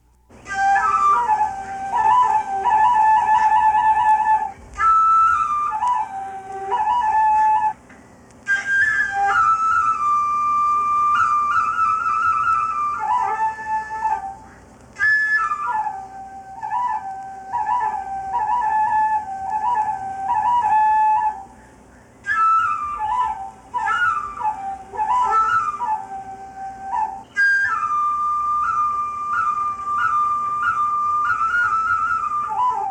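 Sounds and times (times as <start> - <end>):
bamboo flute played by a herdsman: 0.0 - 32.8.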